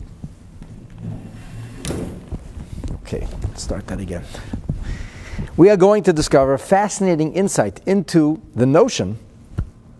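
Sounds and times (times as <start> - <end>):
chair bumping down: 0.6 - 3.6
chair being dragged: 0.6 - 4.6
speech: 3.1 - 5.0, 5.6 - 9.3.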